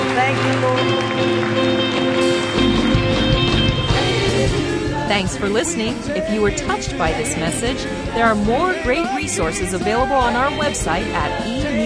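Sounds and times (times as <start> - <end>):
audience clapping: 0.0 - 3.9
speech: 5.2 - 11.8.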